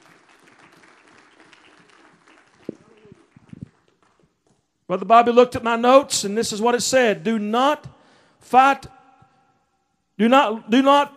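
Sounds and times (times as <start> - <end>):
audience clapping in praise: 0.0 - 4.8
speech: 4.9 - 8.9, 10.2 - 11.1.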